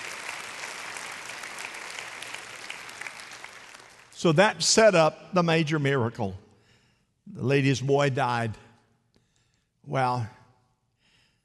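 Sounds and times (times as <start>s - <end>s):
audience clapping: 0.0s - 4.4s
speech: 4.2s - 6.4s, 7.3s - 8.6s, 9.9s - 10.4s.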